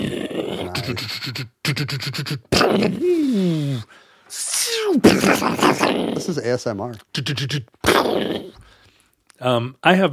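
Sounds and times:
person vocally imitating tank battle noises: 0:00.3 - 0:03.8, 0:04.4 - 0:06.4
speech: 0:00.9 - 0:08.4, 0:09.4 - 0:10.1.

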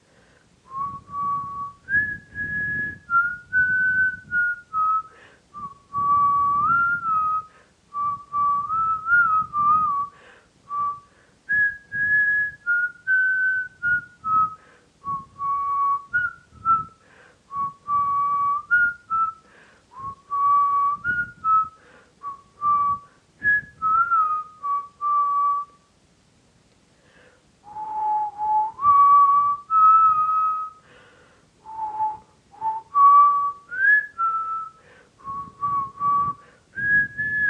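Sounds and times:
person whistling a mystery tune: 0:00.7 - 0:25.8, 0:27.6 - 0:30.9, 0:31.6 - 0:37.4.

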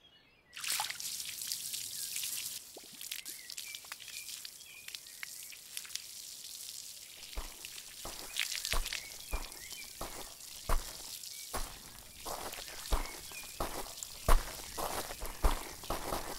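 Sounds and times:
water gushing from a hose: 0:00.6 - 0:16.3.

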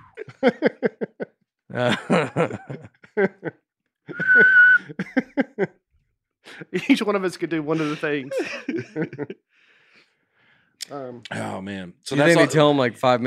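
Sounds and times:
snickering laughter: 0:00.0 - 0:05.8, 0:07.8 - 0:09.4
speech: 0:00.4 - 0:00.7, 0:01.8 - 0:03.6, 0:07.0 - 0:09.3, 0:11.3 - 0:13.2
person whistling: 0:04.1 - 0:05.0.

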